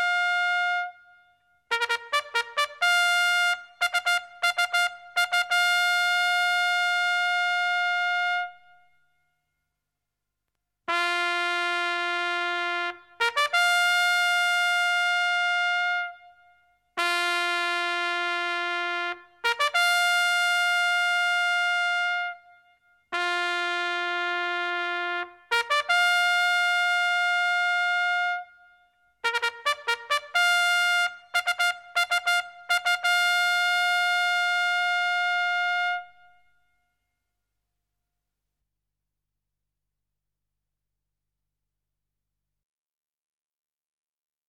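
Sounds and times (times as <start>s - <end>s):
military trumpet: 0.0s - 9.3s, 10.9s - 37.1s.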